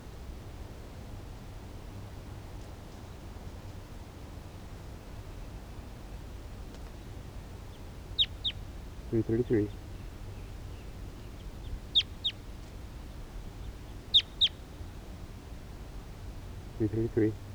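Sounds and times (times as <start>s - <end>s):
wild bird calling in the distance: 7.5s - 17.5s
speech: 9.1s - 9.8s, 16.8s - 17.5s.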